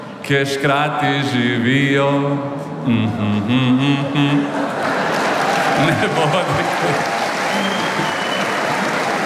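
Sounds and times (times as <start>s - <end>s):
speech: 0.3s - 4.6s, 5.8s - 7.1s
laughter: 3.3s - 9.2s
audience applause: 4.6s - 9.2s.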